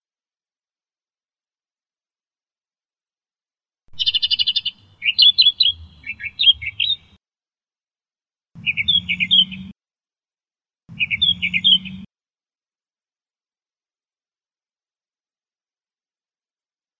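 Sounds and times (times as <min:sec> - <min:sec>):
Australian reed warbler song: 0:03.9 - 0:07.2, 0:08.6 - 0:09.7, 0:10.9 - 0:12.1.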